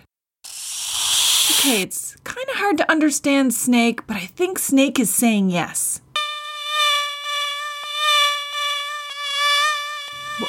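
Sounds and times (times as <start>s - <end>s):
speech: 1.6s - 5.9s
mosquito whining: 6.2s - 10.4s.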